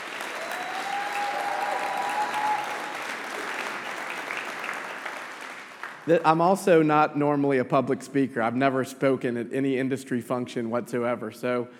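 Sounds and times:
audience applause: 0.0 - 6.3
speech: 6.1 - 11.7.

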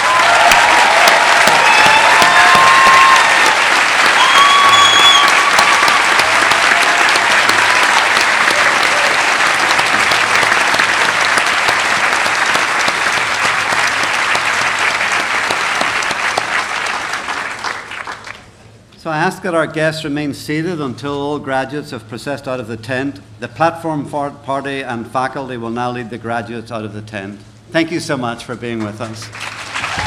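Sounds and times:
large audience applause for graduates: 0.0 - 18.5, 29.3 - 30.0
high whistles: 1.4 - 6.2
speech: 19.4 - 29.5.

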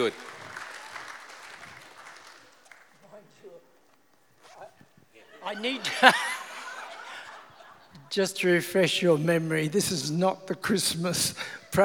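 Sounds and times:
speech: 0.0 - 0.3, 5.5 - 6.4, 8.2 - 11.8
round of applause: 0.0 - 3.2
laughter: 5.2 - 8.4.

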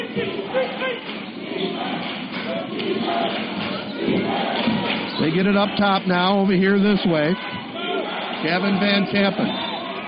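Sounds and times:
basketball cheering section shouting and yelling: 0.0 - 10.0
speech: 5.3 - 7.5, 8.4 - 9.6.

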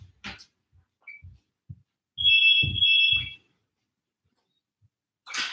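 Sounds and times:
electronic doorbell buzz: 2.2 - 3.4.

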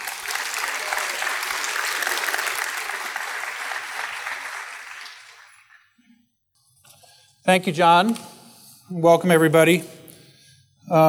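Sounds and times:
round of applause: 0.0 - 5.8
speech: 7.5 - 8.3, 8.9 - 10.0.

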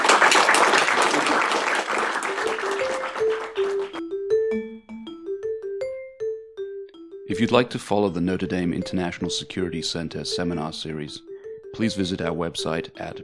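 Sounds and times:
crowd applause: 0.0 - 4.0
bright melodic tune: 2.2 - 13.2
speech: 7.3 - 13.2.

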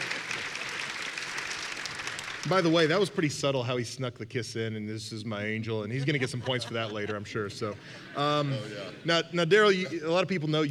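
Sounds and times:
audience applause: 0.0 - 2.9
speech: 2.4 - 10.6
laughter: 5.8 - 10.3.

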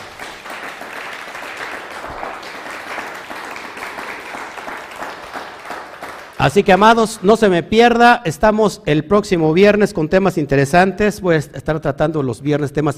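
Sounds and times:
audience applause: 0.0 - 7.3
speech: 6.4 - 12.9.

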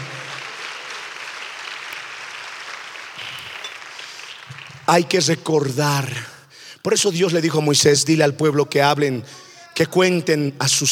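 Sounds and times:
applause from a large crowd: 0.0 - 5.0
speech: 4.9 - 10.9.

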